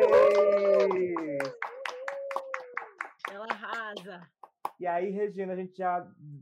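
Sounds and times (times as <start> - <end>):
people cheering and whooping: 0.0 - 3.1
applause: 0.0 - 4.8
speech: 4.2 - 6.3.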